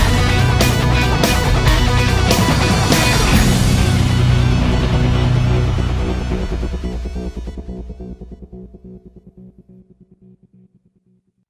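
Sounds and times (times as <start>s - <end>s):
classic news theme music: 0.0s - 8.2s.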